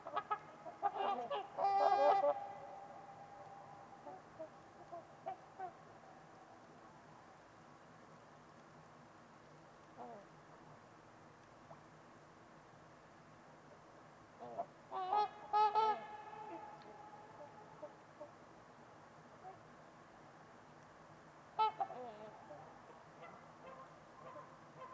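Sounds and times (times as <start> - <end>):
trumpeter swans honking: 0.0 - 6.4, 14.4 - 18.4, 21.6 - 24.9
low background hiss: 0.0 - 24.9.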